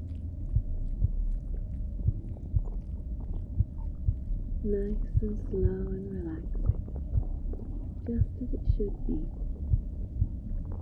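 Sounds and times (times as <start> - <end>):
deep internal stomach rumble: 0.0 - 10.8
slow heartbeat thumps: 0.0 - 10.8
speech: 4.6 - 7.0, 8.1 - 9.4.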